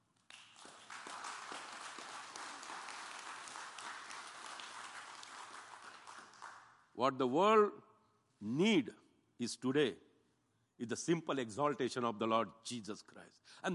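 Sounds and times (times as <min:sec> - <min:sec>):
crowd applause: 0:00.3 - 0:06.6
speech: 0:07.0 - 0:07.8, 0:08.4 - 0:10.0, 0:10.8 - 0:13.7.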